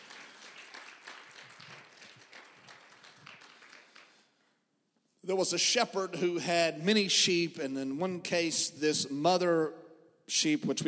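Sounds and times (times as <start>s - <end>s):
audience clapping hands: 0.0s - 4.6s
speech: 5.3s - 10.8s.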